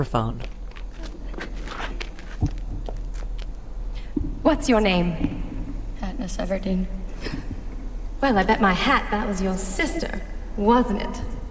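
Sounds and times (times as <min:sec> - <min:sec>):
speech: 0:00.0 - 0:00.5, 0:04.5 - 0:05.4, 0:06.2 - 0:07.4, 0:08.2 - 0:11.3
footsteps climbing stone steps up to a stage: 0:00.4 - 0:04.4.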